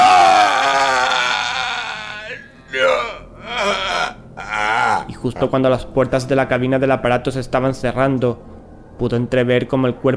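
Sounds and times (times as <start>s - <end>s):
bloodcurdling scream: 0.0s - 5.2s
speech: 5.2s - 10.1s.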